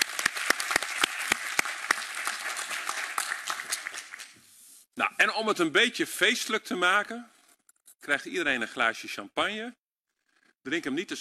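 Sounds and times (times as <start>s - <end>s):
audience applause: 0.0s - 4.4s
speech: 5.0s - 7.4s, 8.0s - 9.8s, 10.6s - 11.2s.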